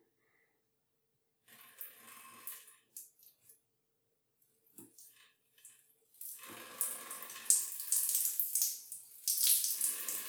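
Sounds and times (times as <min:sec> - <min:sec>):
bathroom ambience: 0:01.5 - 0:03.5, 0:04.6 - 0:10.2.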